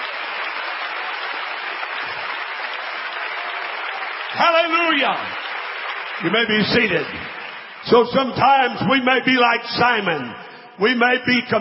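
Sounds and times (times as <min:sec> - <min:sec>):
audience clapping hands: 0:00.0 - 0:09.1
speech: 0:04.4 - 0:05.5, 0:06.2 - 0:11.5.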